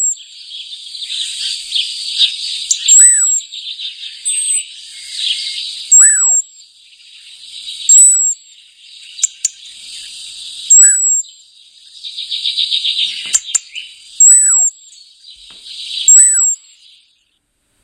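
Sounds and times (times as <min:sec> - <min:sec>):
European robin warbling song: 0:00.0 - 0:17.1.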